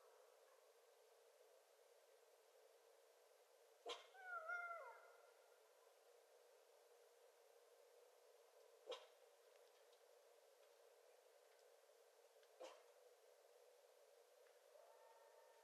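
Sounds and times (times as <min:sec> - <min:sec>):
coyotes howling: 0:03.9 - 0:05.5, 0:14.7 - 0:15.6.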